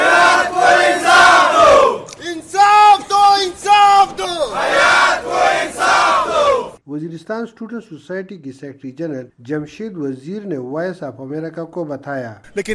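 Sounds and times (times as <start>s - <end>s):
crowd voices: 0.0s - 6.8s
student protesters chanting slogans for justice in front of the Peshawar Press Club: 0.0s - 6.8s
speech: 7.2s - 12.7s.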